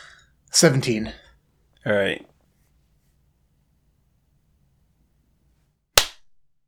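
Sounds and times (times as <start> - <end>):
speech: 0.6 - 1.2, 1.8 - 2.3
hands clapping in unison: 6.0 - 6.2.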